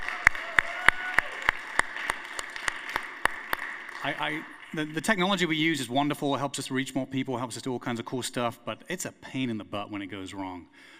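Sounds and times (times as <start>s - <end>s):
audience applause: 0.0s - 5.6s
speech: 4.0s - 10.9s.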